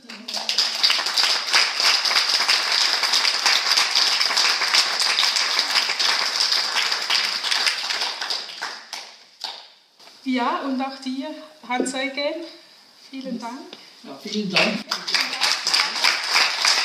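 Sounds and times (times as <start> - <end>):
audience applause: 0.0 - 9.0, 14.9 - 16.8
speech: 10.3 - 15.4.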